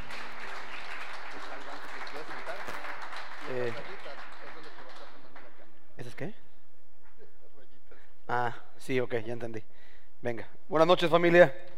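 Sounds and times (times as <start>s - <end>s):
audience applause: 0.0s - 5.7s
speech: 8.4s - 11.7s.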